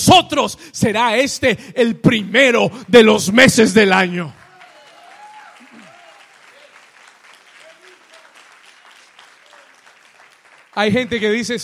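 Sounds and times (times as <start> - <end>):
speech: 0.0 - 4.4, 10.8 - 11.6
people applauding: 2.8 - 11.6.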